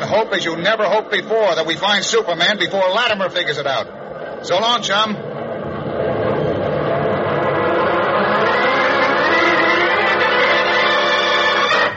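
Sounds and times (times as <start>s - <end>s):
speech: 0.0s - 5.3s
swift oddly shaped plane engine zooming: 5.2s - 11.9s.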